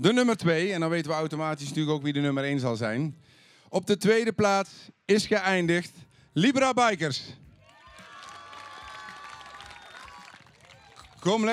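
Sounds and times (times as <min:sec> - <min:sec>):
speech: 0:00.0 - 0:07.4, 0:11.2 - 0:11.5
audience applause for second-place team: 0:07.6 - 0:11.5.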